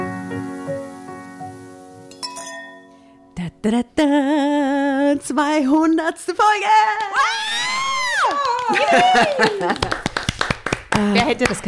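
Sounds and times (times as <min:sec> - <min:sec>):
speech: 0:03.6 - 0:10.1, 0:11.0 - 0:11.6
woman screaming into a microphone: 0:06.7 - 0:09.6
laughter: 0:08.4 - 0:10.2.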